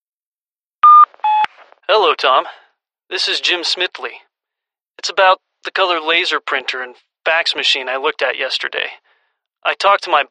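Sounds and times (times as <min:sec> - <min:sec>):
answering machine beep: 0:00.8 - 0:01.5
speech: 0:01.9 - 0:04.3, 0:05.0 - 0:09.0, 0:09.6 - 0:10.2.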